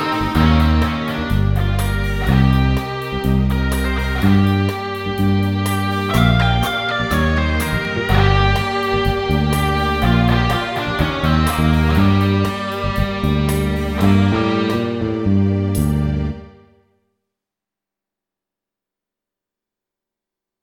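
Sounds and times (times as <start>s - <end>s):
blues rock ballad in G minor: 0.0s - 16.2s.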